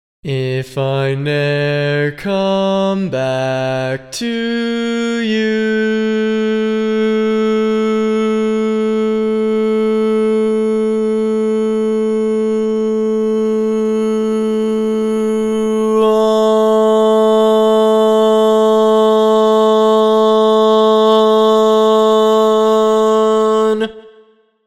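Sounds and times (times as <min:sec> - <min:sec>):
barbershop bass voice singing: 0:00.2 - 0:23.9.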